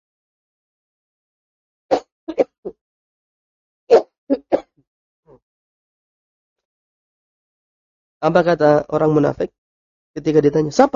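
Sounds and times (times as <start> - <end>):
coughing: 1.9 - 2.8, 3.9 - 4.8
speech: 8.2 - 10.9.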